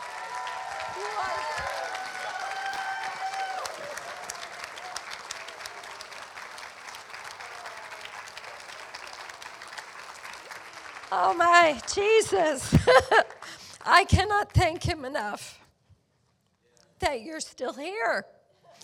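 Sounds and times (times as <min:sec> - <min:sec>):
audience applause: 0:00.0 - 0:12.2
speech: 0:11.1 - 0:15.6, 0:17.0 - 0:18.3.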